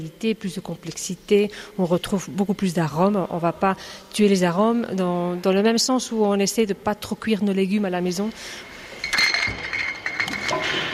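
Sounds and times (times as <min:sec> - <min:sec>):
speech: 0:00.0 - 0:08.7
steady noise: 0:00.0 - 0:10.9
glass olive oil bottles clinking during bottling and order packing: 0:08.9 - 0:10.9.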